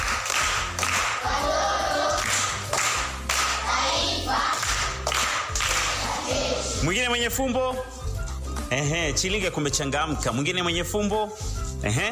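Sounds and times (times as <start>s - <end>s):
primary schoolchildren clapping for a correct riddle answer: 0.0s - 6.6s
speech: 6.9s - 8.0s, 8.7s - 12.0s.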